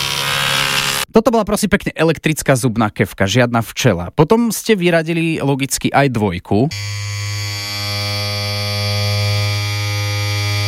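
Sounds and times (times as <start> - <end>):
electric hair clipper buzzing: 0.0 - 1.1, 6.7 - 10.6
speech: 1.2 - 7.4.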